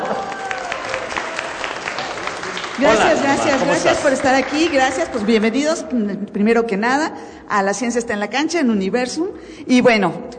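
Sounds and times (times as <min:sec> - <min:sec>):
audience clapping at a live science talk: 0:00.0 - 0:05.8
speech: 0:02.8 - 0:10.3.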